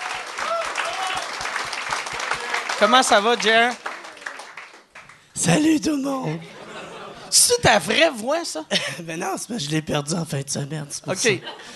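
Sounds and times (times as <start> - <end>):
crowd applause at a live stage show: 0.0 - 5.3
speech: 2.8 - 3.8, 5.4 - 6.6, 7.3 - 11.7
laughter: 6.1 - 8.1, 11.4 - 11.7.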